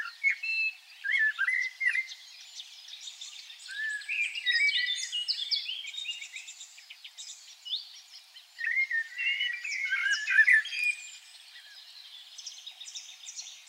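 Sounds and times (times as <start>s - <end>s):
Common blackbird singing: 0.0s - 13.6s.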